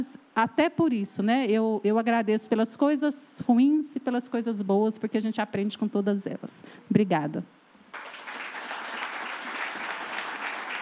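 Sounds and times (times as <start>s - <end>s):
speech: 0.0s - 8.2s
audience applause: 7.9s - 10.8s.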